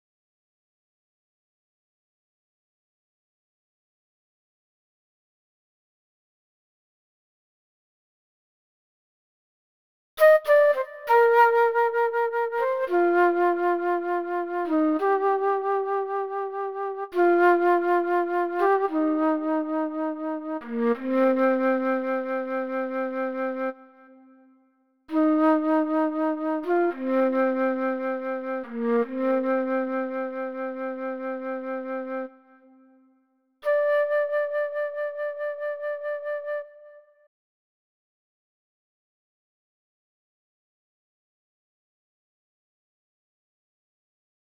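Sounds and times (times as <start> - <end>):
flute: 10.2 - 37.3.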